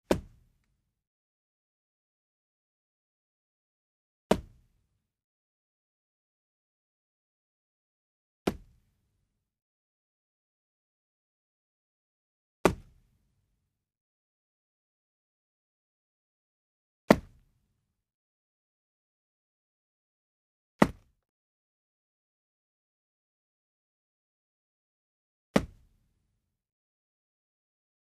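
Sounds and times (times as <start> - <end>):
punches to the stomach: 0.1 - 0.4, 4.3 - 4.6, 8.5 - 8.8, 12.7 - 13.0, 17.1 - 17.4, 20.8 - 21.1, 25.6 - 25.9
head hitting a wall: 20.8 - 21.1.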